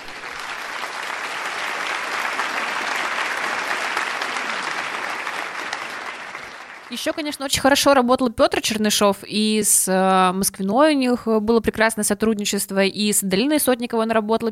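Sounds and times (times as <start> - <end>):
crowd applauding: 0.0 - 7.3
speech: 6.9 - 14.5.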